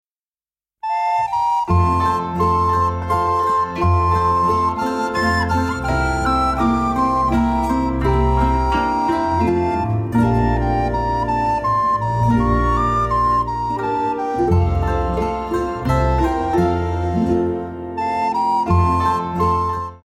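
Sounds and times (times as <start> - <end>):
minuet: 0.8 - 20.0.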